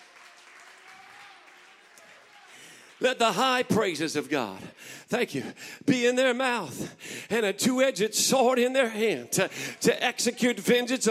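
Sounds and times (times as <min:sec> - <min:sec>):
audience clapping hands: 0:00.0 - 0:04.8
speech: 0:03.0 - 0:11.0.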